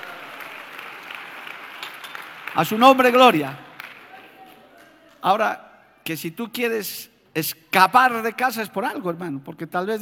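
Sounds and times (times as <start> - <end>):
church congregation clapping in praise of God during a sermon: 0.0 - 5.3
speech: 2.5 - 3.6, 5.2 - 10.0.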